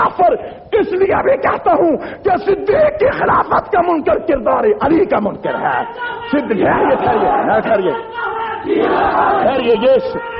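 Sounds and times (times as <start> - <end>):
speech: 0.1 - 10.3
crowd shouting religious slogans at an Urdu-language religious address: 6.1 - 10.3.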